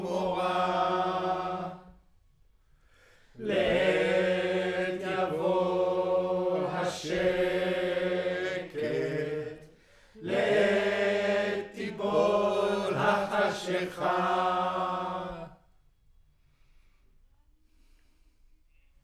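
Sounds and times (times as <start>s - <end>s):
choir singing: 0.0s - 2.0s, 3.4s - 15.6s.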